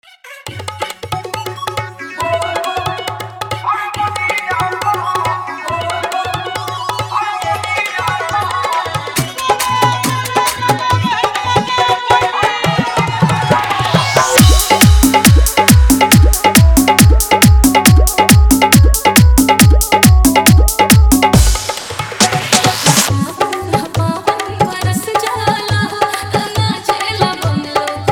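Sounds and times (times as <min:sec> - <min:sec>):
dholak bass dance mix: 0:00.3 - 0:28.1.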